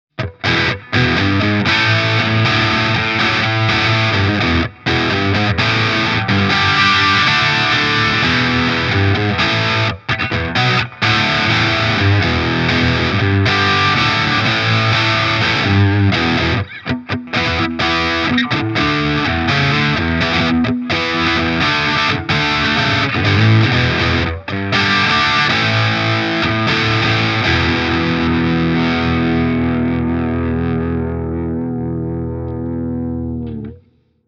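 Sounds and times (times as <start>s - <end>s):
crunch rhythm guitar through humbucker pickup: 0.1s - 34.0s.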